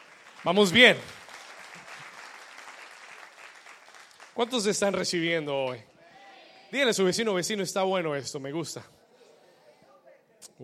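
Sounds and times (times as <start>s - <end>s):
audience applause: 0.0s - 5.0s
speech: 0.4s - 1.2s, 4.4s - 5.9s, 6.7s - 9.0s.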